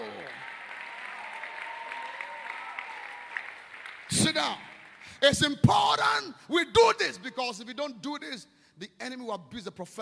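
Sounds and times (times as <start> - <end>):
audience clapping: 0.0 - 5.6
speech: 4.1 - 10.0.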